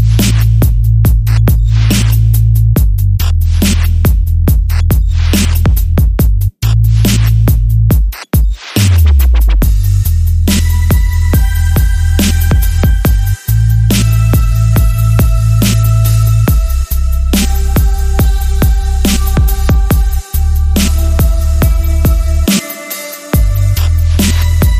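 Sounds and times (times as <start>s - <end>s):
sub bass accent: 0.0s - 8.0s, 8.8s - 22.5s, 23.4s - 24.7s.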